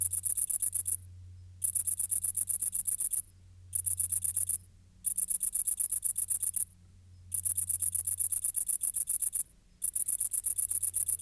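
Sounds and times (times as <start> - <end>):
great green bush-cricket singing high fast pulsed trills: 0.0 - 6.7, 7.3 - 11.1.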